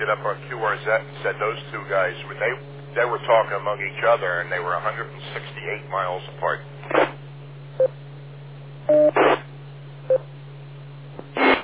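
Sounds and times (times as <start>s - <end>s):
steady low hum: 0.0s - 11.6s
speech: 0.1s - 7.0s
radio repeater beeps via Echolink: 8.9s - 9.4s
hissy static bursts: 8.9s - 9.5s, 11.3s - 11.6s.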